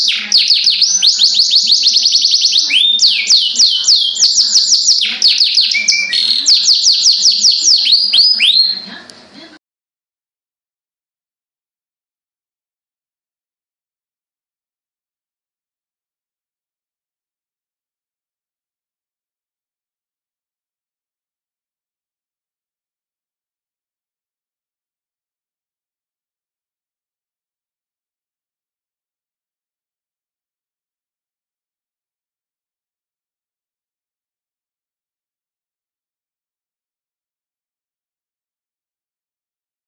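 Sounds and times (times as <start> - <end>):
canary singing: 0.0 - 9.2.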